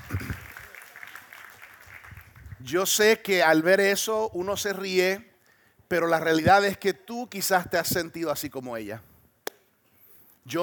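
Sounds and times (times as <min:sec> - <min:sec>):
audience applause: 0:00.0 - 0:02.6
speech: 0:02.6 - 0:05.3, 0:05.9 - 0:09.1, 0:10.4 - 0:10.6.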